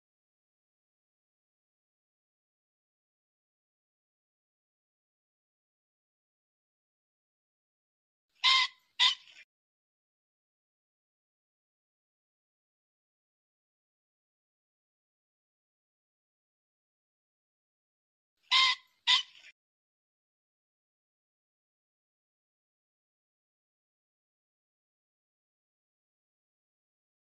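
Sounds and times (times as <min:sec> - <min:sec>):
pheasant squawking: 0:08.4 - 0:09.4, 0:18.5 - 0:19.5.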